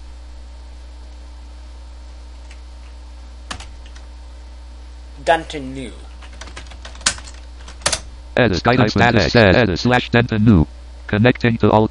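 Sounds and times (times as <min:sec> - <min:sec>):
mains hum: 0:00.0 - 0:11.8
computer keyboard clicks typing a command: 0:03.5 - 0:04.0, 0:06.2 - 0:08.0
speech: 0:05.3 - 0:06.0, 0:08.4 - 0:11.8.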